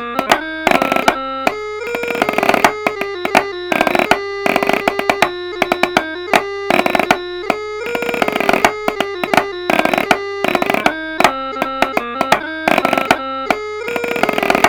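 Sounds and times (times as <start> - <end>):
bagpipe chanter: 0.0 - 14.6
snare drum: 0.0 - 14.6.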